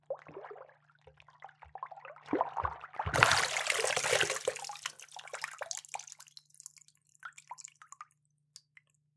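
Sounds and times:
coming up from underwater: 2.4 - 4.8.

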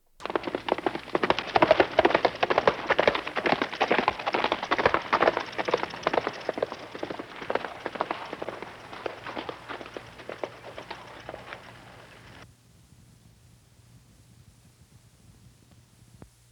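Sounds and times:
horse galloping and stopping on stone: 0.2 - 12.4.

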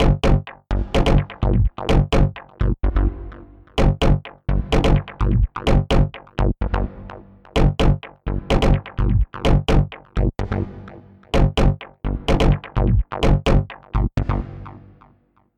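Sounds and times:
bassline: 0.0 - 15.3.

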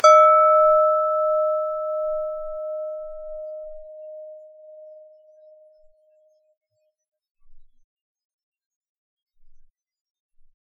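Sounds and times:
wood hitting high glass bowl: 0.0 - 5.2.

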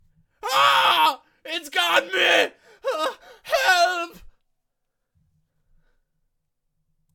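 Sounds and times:
desperate scream: 0.4 - 4.3.

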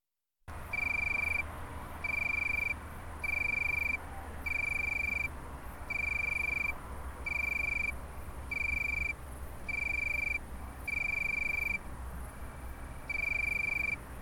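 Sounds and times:
tree cricket trilling: 0.5 - 14.2.

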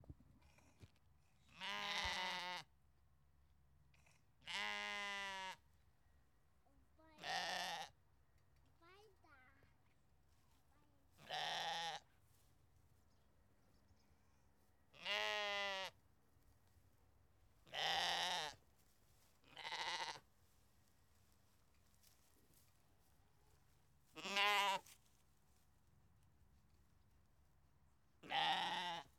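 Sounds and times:
Belgian sheep bleating: 1.6 - 2.7, 4.4 - 5.6, 7.2 - 7.9, 11.2 - 12.0, 15.0 - 16.0, 17.7 - 18.6, 19.5 - 20.2, 24.2 - 24.9, 28.2 - 29.1.

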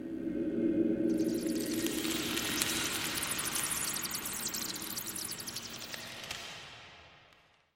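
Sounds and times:
bats at a cave entrance: 1.1 - 6.5.

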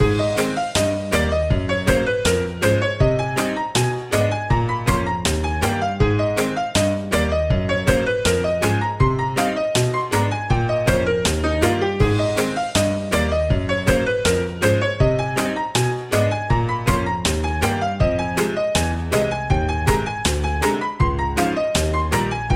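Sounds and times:
childish theme music loop: 0.0 - 22.5.

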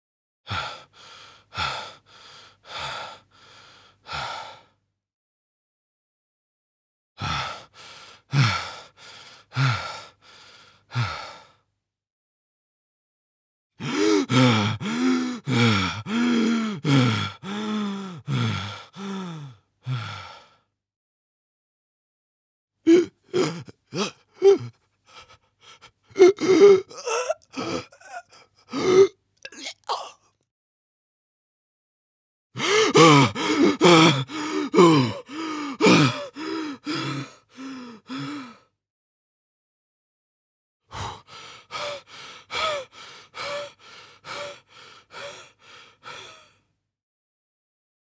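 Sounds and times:
male player out of breath: 0.5 - 4.8, 7.2 - 11.6, 13.8 - 20.6, 22.9 - 30.1, 32.6 - 38.7, 40.9 - 46.6.

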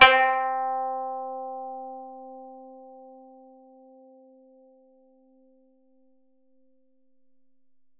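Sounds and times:
koto note C4: 0.0 - 2.4.

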